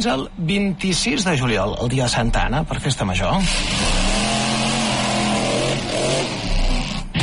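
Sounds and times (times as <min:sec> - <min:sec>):
speech: 0:00.0 - 0:04.3
stunt car engine revving: 0:03.4 - 0:07.2.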